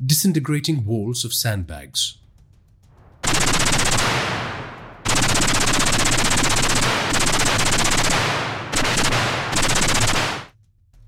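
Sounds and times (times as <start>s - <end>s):
speech: 0.0s - 2.2s
SR-3 compact assault rifle fully automatic gunfire: 3.2s - 10.5s.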